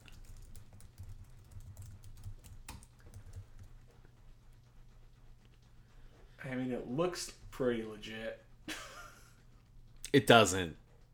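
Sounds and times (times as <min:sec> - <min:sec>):
web address typed on a computer keyboard: 0:00.0 - 0:05.6
speech: 0:06.6 - 0:08.8, 0:10.1 - 0:10.8.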